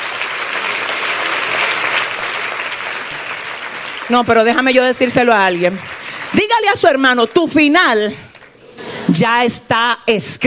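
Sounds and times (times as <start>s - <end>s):
audience applause: 0.0s - 7.1s
speech: 4.1s - 8.3s, 9.1s - 10.4s.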